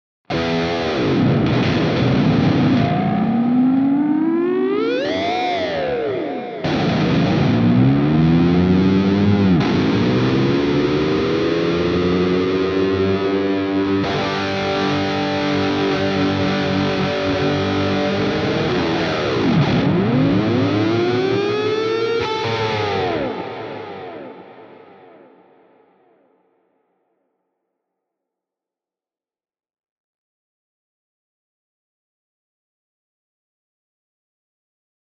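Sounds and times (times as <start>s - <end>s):
Jackson PRO PLUS Soloist SLA3 Floyd electric guitar high gain: 0.3s - 26.2s.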